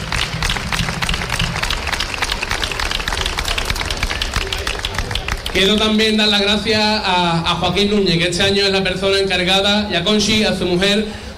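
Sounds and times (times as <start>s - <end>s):
loud applause from an audience: 0.0s - 6.6s
speech: 5.6s - 11.3s.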